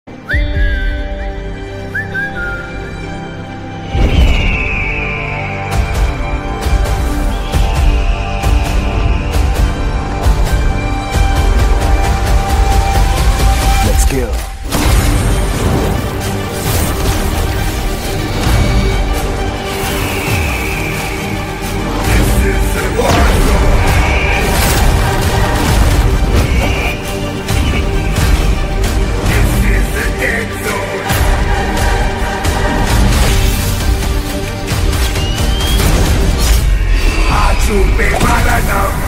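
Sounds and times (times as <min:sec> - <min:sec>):
teaser trailer background music: 0:00.1 - 0:39.0.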